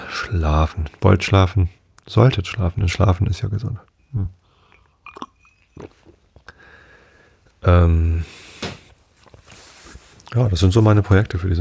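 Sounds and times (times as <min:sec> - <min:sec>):
speech: 0:00.2 - 0:04.4, 0:05.2 - 0:06.0, 0:07.6 - 0:08.5, 0:10.3 - 0:11.5
coffee being sipped and swallowed: 0:04.2 - 0:06.6
soft mouth clicks: 0:04.6 - 0:06.6.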